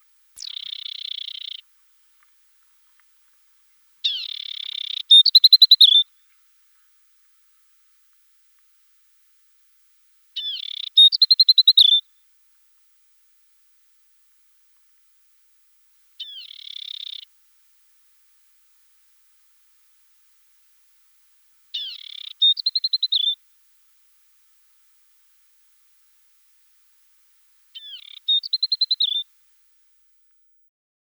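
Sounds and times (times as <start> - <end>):
desert warbler voice: 0.4 - 1.6, 4.0 - 6.4, 10.4 - 12.1, 16.2 - 17.3, 21.7 - 23.4, 27.8 - 29.3.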